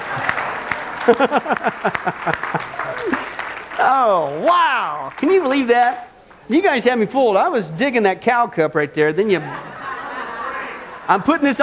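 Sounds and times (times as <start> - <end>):
laughter: 0.0 - 3.4, 9.2 - 11.6
audience clapping: 0.0 - 6.1
speech: 1.0 - 9.7, 11.1 - 11.6.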